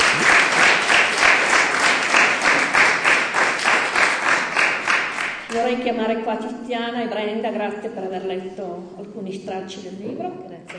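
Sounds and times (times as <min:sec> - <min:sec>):
audience applauding: 0:00.0 - 0:05.6
speech: 0:05.8 - 0:10.7.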